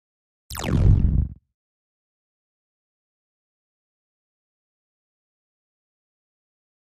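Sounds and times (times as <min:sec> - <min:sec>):
distorted electronic laser sound: 0:00.5 - 0:01.4.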